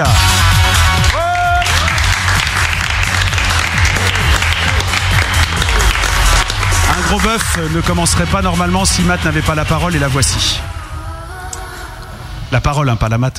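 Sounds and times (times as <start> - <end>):
audience applause: 0.8 - 9.6
speech: 7.2 - 10.8, 12.5 - 13.3.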